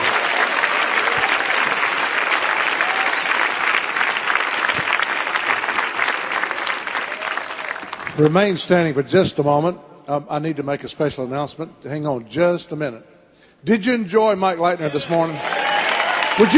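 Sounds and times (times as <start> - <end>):
audience hand clapping in praise: 0.0 - 8.6, 14.9 - 16.5
speech: 8.2 - 15.6, 16.4 - 16.5.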